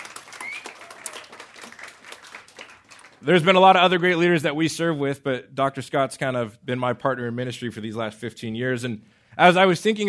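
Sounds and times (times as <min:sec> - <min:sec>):
audience applause at a ministry gathering: 0:00.0 - 0:03.3
speech: 0:03.2 - 0:10.0.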